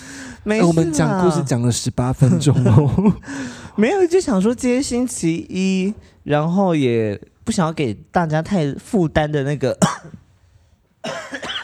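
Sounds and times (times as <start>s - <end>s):
speech: 0.4s - 10.2s, 11.0s - 11.6s
person coughing from laughing: 9.8s - 10.2s, 11.0s - 11.6s.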